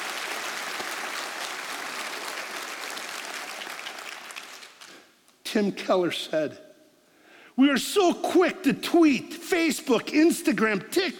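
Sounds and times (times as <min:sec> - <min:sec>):
audience applause: 0:00.0 - 0:05.0
speech: 0:05.6 - 0:06.7, 0:07.6 - 0:11.1.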